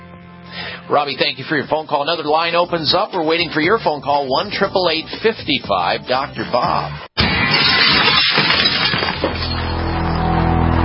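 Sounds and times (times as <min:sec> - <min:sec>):
speech: 0:00.9 - 0:07.1
glass window smashing in a break-in: 0:07.2 - 0:10.4.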